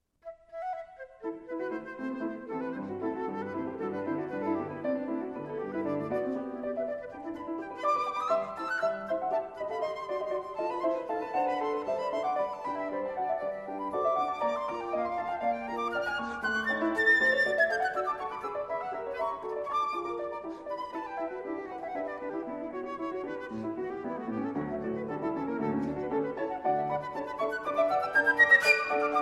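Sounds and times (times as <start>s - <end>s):
flute and piano sonata: 0.2s - 29.2s.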